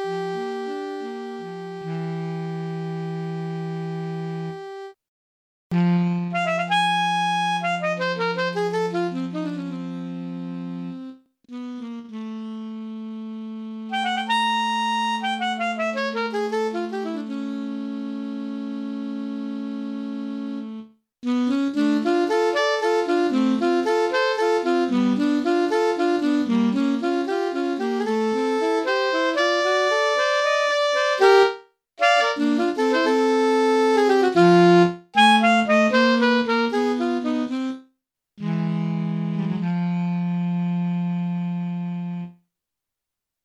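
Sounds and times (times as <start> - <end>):
alto saxophone duet: 0.0 - 5.0, 5.7 - 42.4.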